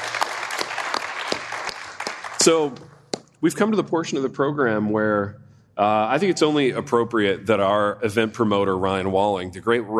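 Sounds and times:
audience applause: 0.0s - 2.8s
speech: 2.4s - 9.9s.

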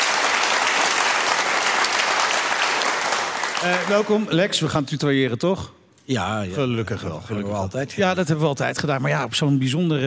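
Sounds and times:
audience applause: 0.0s - 4.4s
speech: 3.6s - 10.0s.

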